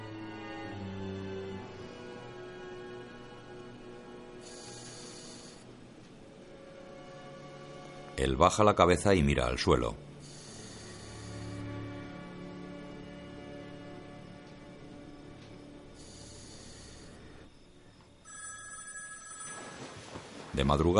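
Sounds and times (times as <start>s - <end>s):
soft steady hiss: 1.5s - 20.9s
speech: 8.2s - 10.1s, 20.6s - 20.9s
telephone ringing at night with a faint electronic bell tone: 18.2s - 20.0s.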